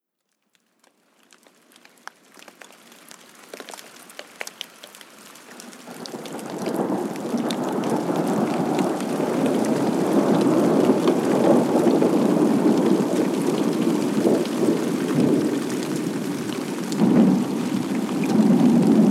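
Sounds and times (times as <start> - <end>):
rain: 0.8 - 19.0
thunder: 5.9 - 19.0.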